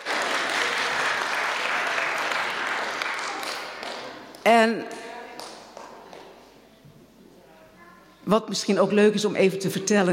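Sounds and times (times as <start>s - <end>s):
audience applause at a gathering: 0.0s - 4.4s
speech: 4.5s - 5.0s, 8.3s - 10.1s.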